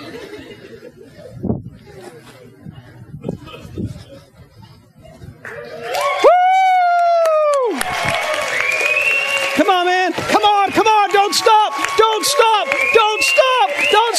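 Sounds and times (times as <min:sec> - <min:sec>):
laughter: 0:00.0 - 0:06.0
crowd cheering wildly: 0:05.5 - 0:14.1.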